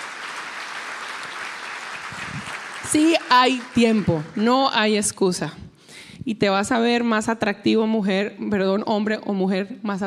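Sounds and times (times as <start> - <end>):
audience applause: 0.0 - 4.6
speech: 2.9 - 5.6, 6.3 - 10.0.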